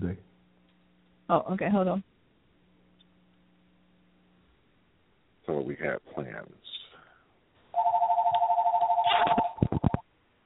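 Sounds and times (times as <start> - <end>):
speech: 1.3 - 2.1, 5.5 - 6.7
telephone dial tone: 7.8 - 10.0
telephone keypad beeps: 7.8 - 10.0.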